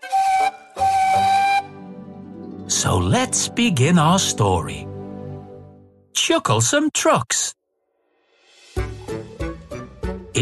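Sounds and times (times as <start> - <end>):
steam whistle of a big strong tender engine: 0.0 - 1.8
speech: 2.8 - 4.9, 6.3 - 7.6.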